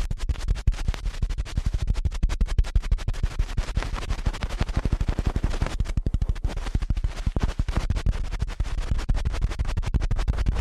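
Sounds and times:
ear cleaning scratching and rubbing: 0.0s - 10.5s.

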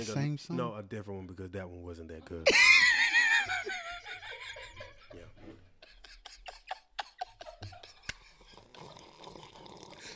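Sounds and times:
speech: 0.0s - 3.8s
laughter: 2.4s - 8.8s
person sipping a drink: 8.5s - 10.1s.

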